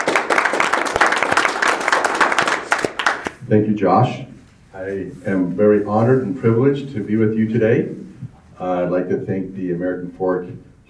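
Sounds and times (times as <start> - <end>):
audience applause: 0.0 - 3.3
speech: 3.5 - 10.8.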